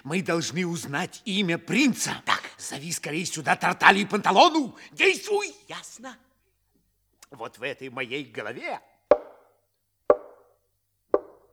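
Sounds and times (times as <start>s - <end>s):
speech: 0.0s - 6.3s, 7.3s - 8.9s
knocking: 9.1s - 9.5s, 10.1s - 10.5s, 11.2s - 11.5s.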